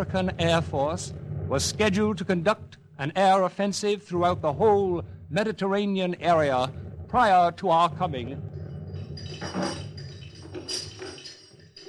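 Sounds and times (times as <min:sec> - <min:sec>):
speech: 0:00.0 - 0:08.5, 0:09.2 - 0:09.8, 0:10.7 - 0:10.9
ship's anchor dropping with metallic rattle: 0:08.4 - 0:11.8.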